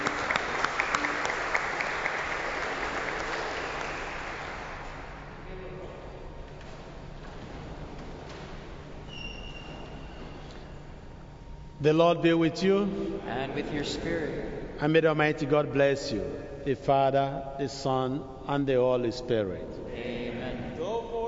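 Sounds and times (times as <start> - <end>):
large audience applauding: 0.0 - 5.4
speech: 11.8 - 20.1.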